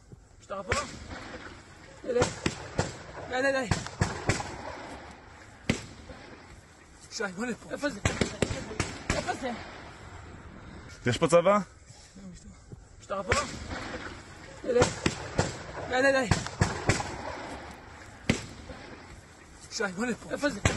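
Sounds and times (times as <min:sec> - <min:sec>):
speech: 0:00.5 - 0:04.4, 0:07.2 - 0:09.8, 0:11.0 - 0:13.9, 0:14.6 - 0:15.1, 0:15.9 - 0:16.5, 0:19.8 - 0:20.7
gunfire: 0:00.7 - 0:06.6, 0:07.7 - 0:10.2, 0:13.3 - 0:19.4, 0:20.2 - 0:20.7.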